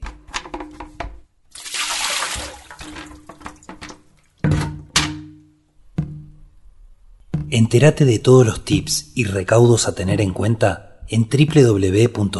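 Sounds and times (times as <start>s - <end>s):
water spilling from an overturned container: 1.5s - 4.3s
speech: 7.5s - 12.3s.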